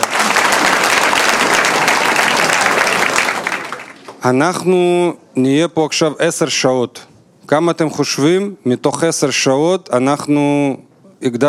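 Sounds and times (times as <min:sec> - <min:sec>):
audience applause: 0:00.0 - 0:04.2
speech: 0:04.2 - 0:11.4.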